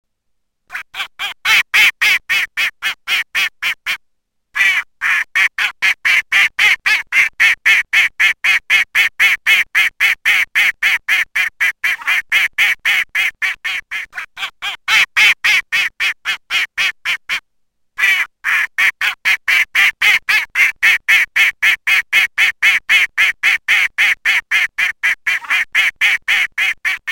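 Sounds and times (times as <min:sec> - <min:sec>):
mallard quacking: 0:00.7 - 0:04.0, 0:04.6 - 0:17.4, 0:18.0 - 0:27.0.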